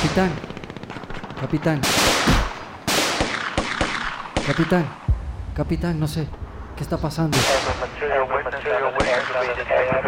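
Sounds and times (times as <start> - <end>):
gunfire bursts in a battle: 0.0 - 5.1, 7.3 - 8.0, 8.9 - 10.0
speech: 0.1 - 0.5, 1.4 - 2.5, 4.5 - 5.0, 5.6 - 10.0.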